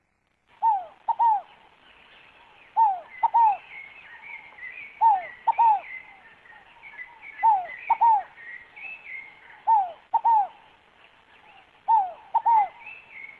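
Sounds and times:
scaled dove cooing: 0:00.6 - 0:01.6, 0:02.8 - 0:03.6, 0:05.0 - 0:05.9, 0:07.4 - 0:08.4, 0:09.6 - 0:10.6, 0:11.9 - 0:12.9.

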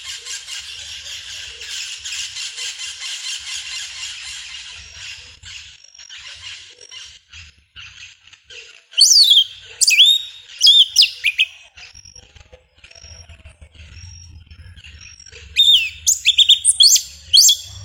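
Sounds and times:
Yellow-legged Thrush singing: 0:09.0 - 0:11.5, 0:15.6 - 0:17.8.

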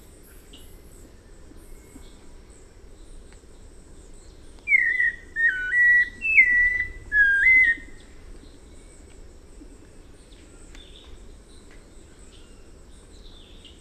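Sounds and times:
White-necked Thrush song: 0:04.6 - 0:08.1.

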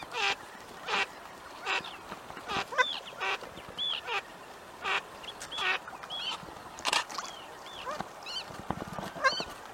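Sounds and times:
lake duck calls: 0:00.1 - 0:04.2, 0:04.8 - 0:06.3, 0:09.0 - 0:09.5.

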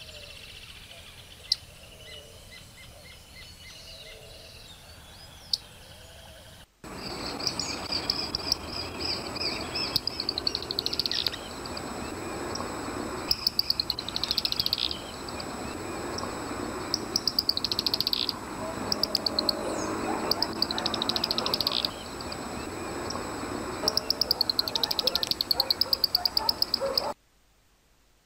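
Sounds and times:
fork-tailed flycatcher singing: 0:00.0 - 0:27.2.

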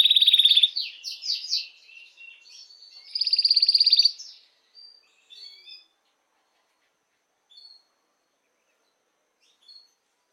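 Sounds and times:
canary soft high chirps: 0:00.0 - 0:00.8, 0:03.0 - 0:04.2
canary pulsed trill: 0:00.0 - 0:04.4.

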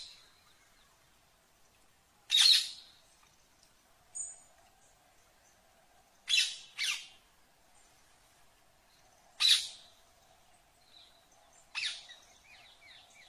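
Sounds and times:
grey ringneck parakeet calling: 0:02.3 - 0:02.8, 0:11.7 - 0:12.1.

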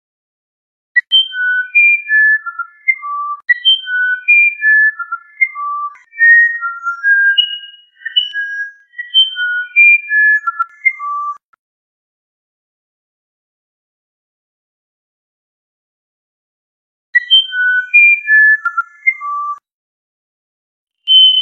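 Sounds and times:
musician wren whistling a phrase: 0:01.0 - 0:11.4, 0:17.2 - 0:19.6, 0:21.1 - 0:21.4.

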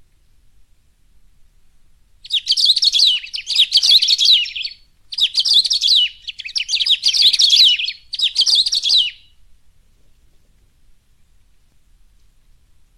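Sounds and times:
Saffron-billed sparrow singing rapid tangled twittering phrases: 0:02.2 - 0:09.4.

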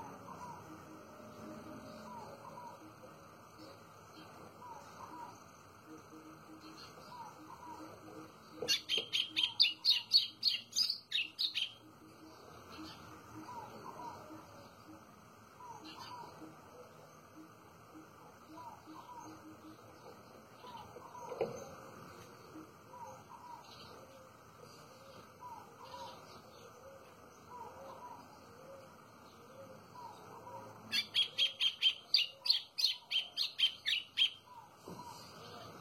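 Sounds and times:
white-throated seedeater singing: 0:00.0 - 0:28.5, 0:29.1 - 0:35.5.

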